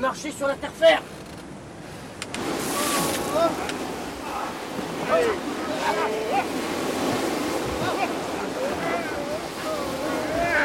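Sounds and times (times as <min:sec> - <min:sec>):
speech: 0:00.0 - 0:01.2, 0:03.4 - 0:03.8, 0:04.8 - 0:06.8
ocean surf rushing on an island shore: 0:00.0 - 0:10.6
wind: 0:00.0 - 0:10.6
voices calling out: 0:02.5 - 0:10.6.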